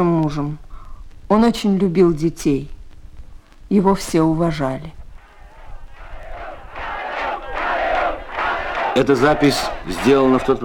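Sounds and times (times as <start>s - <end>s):
speech: 0.0s - 0.6s, 1.3s - 2.8s, 3.7s - 5.0s, 9.0s - 10.6s
crowd chanting: 5.2s - 10.6s.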